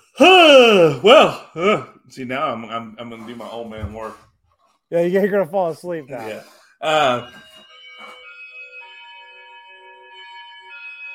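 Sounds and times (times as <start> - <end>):
speech: 0.2 - 4.3, 4.9 - 8.2
doorbell ringing: 6.8 - 11.1.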